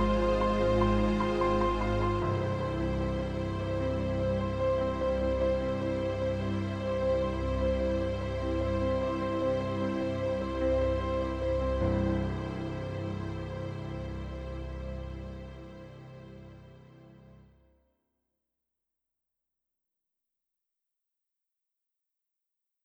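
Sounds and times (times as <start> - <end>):
strings pad on a Yamaha NP-15 digital piano: 0.0 - 17.6.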